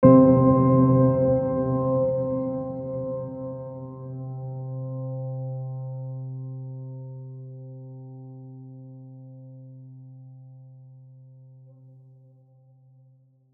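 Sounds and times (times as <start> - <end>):
piano: 0.0 - 13.5.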